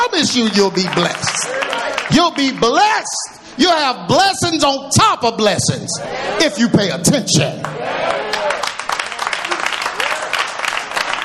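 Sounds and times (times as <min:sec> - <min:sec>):
audience hand claps: 0:00.0 - 0:02.8, 0:07.6 - 0:11.2
speech: 0:00.1 - 0:08.3.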